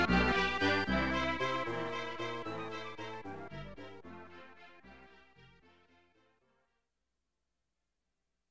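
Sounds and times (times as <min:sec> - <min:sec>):
waltz music: 0:00.0 - 0:06.2.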